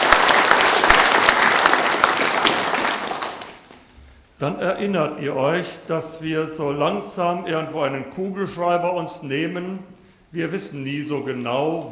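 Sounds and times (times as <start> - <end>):
applause from church audience: 0.0 - 3.7
speech: 4.4 - 11.9.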